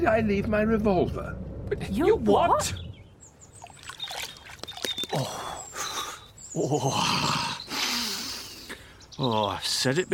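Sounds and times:
speech: 0.0s - 2.9s, 5.1s - 5.4s, 6.6s - 7.4s, 9.2s - 10.1s
water splashing as someone washes their face in a birdbath: 3.5s - 5.8s.

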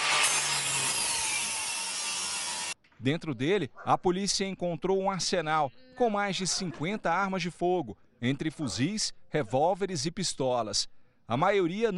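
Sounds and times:
saw cutting into a safe: 0.0s - 2.8s
speech: 3.0s - 11.9s.

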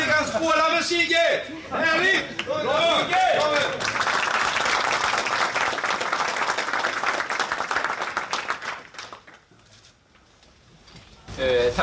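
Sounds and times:
speech: 0.4s - 4.0s
audience applause: 2.4s - 9.5s.

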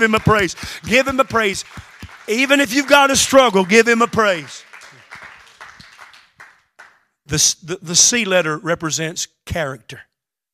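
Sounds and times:
speech: 0.0s - 4.7s, 7.3s - 10.1s
audience hand clapping: 0.0s - 7.1s.

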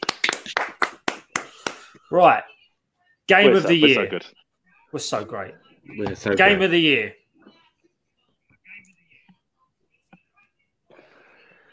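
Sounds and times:
round of applause, hands clapping: 0.0s - 2.0s
speech: 2.1s - 2.5s, 3.3s - 7.2s.

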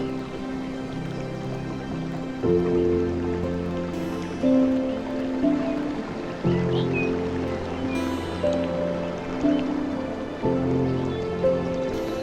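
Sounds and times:
rushing dripping water: 0.0s - 12.2s
soft sustained sleep music chords: 0.0s - 12.2s
faint bird-like chirp: 6.5s - 9.6s.

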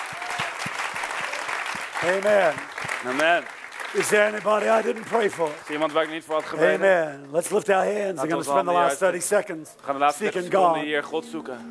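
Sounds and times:
audience applauding: 0.0s - 7.0s
speech: 2.0s - 11.6s.

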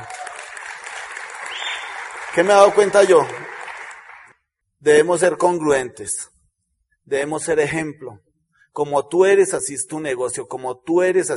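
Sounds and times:
audience applause: 0.0s - 4.3s
speech: 2.4s - 3.4s, 4.8s - 6.4s, 7.1s - 11.3s.

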